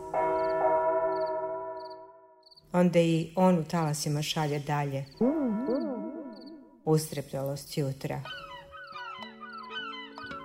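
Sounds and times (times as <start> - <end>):
church bell in a bell tower struck: 0.0 - 2.3
speech: 2.8 - 5.9, 6.9 - 8.5.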